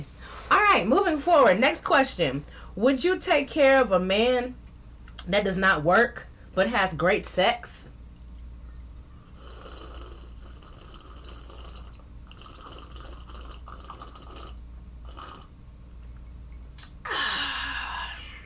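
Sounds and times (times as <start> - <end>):
speech: 0.7 - 4.6, 5.2 - 7.8
person sipping tea: 9.3 - 15.5.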